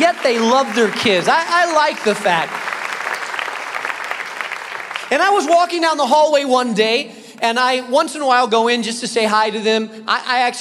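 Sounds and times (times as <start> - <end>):
audience applause: 0.0 - 5.8
speech: 0.1 - 2.6, 5.1 - 10.5.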